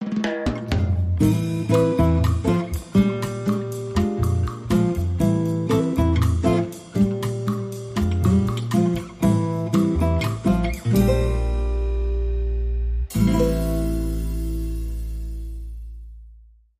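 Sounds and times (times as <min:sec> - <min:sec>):
romantic bossa nova music: 0:00.0 - 0:16.1.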